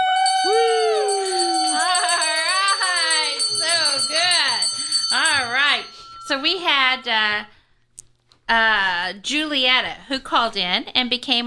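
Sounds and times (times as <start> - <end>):
bell ringing: 0.0 - 7.1
speech: 6.3 - 7.6, 8.5 - 11.4.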